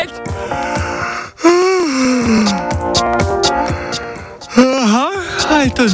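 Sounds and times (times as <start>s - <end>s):
rhythmic music: 0.0s - 5.9s
person yawning: 0.8s - 2.8s, 4.5s - 5.4s
speech: 5.8s - 5.9s.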